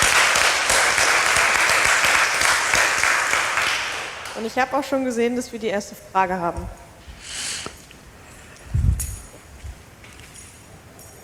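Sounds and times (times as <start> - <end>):
crowd applause: 0.0 - 4.4
speech: 4.4 - 6.8.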